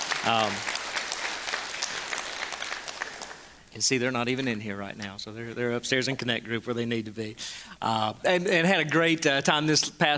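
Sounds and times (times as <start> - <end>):
crowd clapping: 0.0 - 3.6
speech: 0.2 - 0.7, 3.8 - 10.1.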